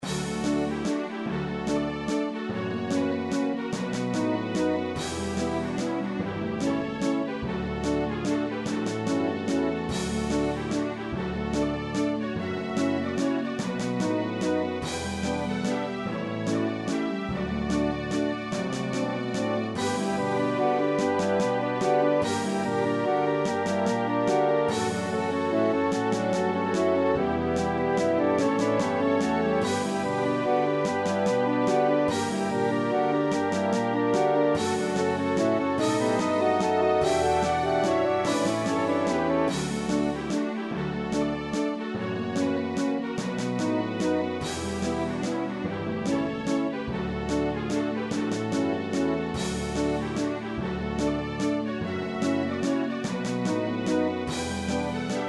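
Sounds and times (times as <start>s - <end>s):
orchestral music: 0.0s - 55.2s.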